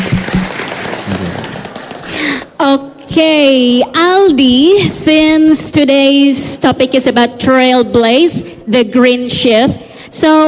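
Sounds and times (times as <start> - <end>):
audience applause: 0.0 - 2.3
speech: 2.7 - 10.4.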